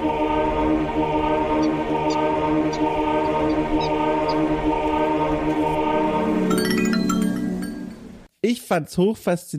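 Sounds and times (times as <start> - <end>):
video game monk conversion sound effect with droning harmonic tone: 0.2 - 8.3
faint chiming accents: 6.2 - 8.3
speech: 8.7 - 9.5.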